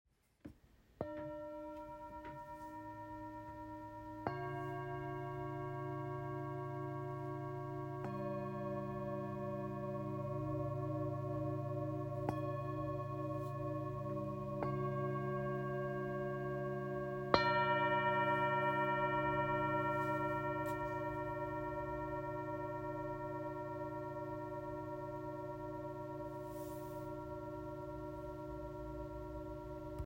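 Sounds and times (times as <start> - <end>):
Tibetan singing bowls: 1.0 - 30.0.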